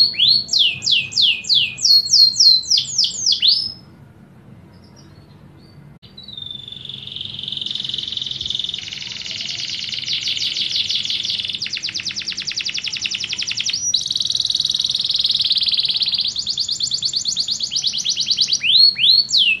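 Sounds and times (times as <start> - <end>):
canary singing descending whistled notes: 0.0 - 3.8, 4.8 - 19.5.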